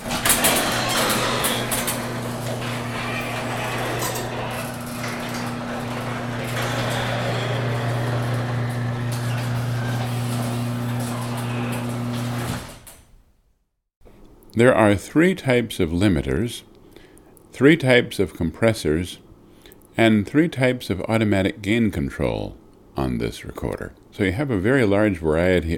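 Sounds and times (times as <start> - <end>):
garage door closing: 0.0 - 13.3
speech: 14.6 - 16.7, 17.6 - 19.2, 20.0 - 25.7.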